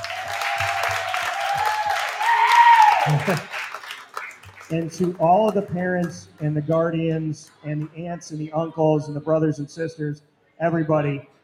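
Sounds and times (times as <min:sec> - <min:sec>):
long sustained cheer-like tone: 0:00.0 - 0:03.7
crowd applauding: 0:00.0 - 0:07.2
speech: 0:03.1 - 0:03.5, 0:04.7 - 0:11.4.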